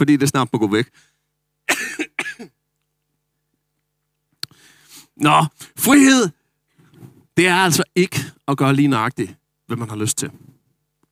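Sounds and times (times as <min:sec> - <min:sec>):
speech: 0:00.0 - 0:01.1, 0:05.2 - 0:06.4, 0:07.4 - 0:10.5
person coughing: 0:01.7 - 0:02.6.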